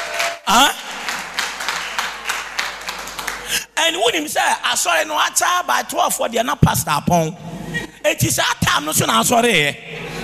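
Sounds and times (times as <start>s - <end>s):
church congregation clapping for the Lord: 0.0s - 3.8s
speech: 0.5s - 0.8s, 4.0s - 9.9s.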